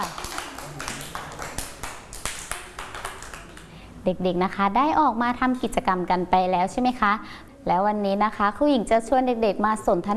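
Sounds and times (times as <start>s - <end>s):
children clapping hands: 0.0s - 3.8s
speech: 4.0s - 10.1s.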